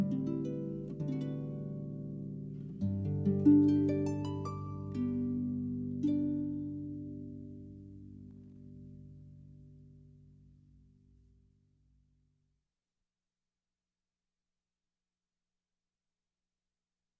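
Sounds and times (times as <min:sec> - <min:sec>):
harp barcarolle: 0:00.0 - 0:11.0.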